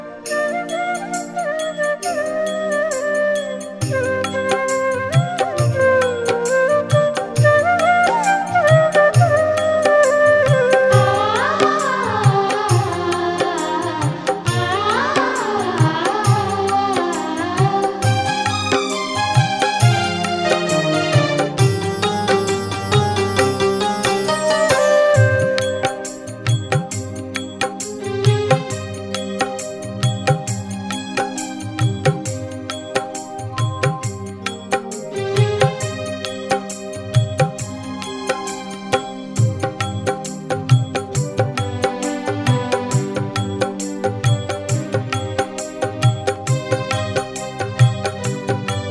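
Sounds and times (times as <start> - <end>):
karaoke music: 0.3 - 48.8.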